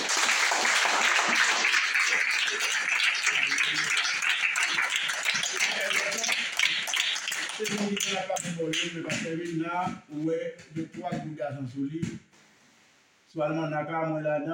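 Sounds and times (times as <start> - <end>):
crowd applause: 0.0 - 8.6
speech: 7.6 - 12.3, 13.3 - 14.5.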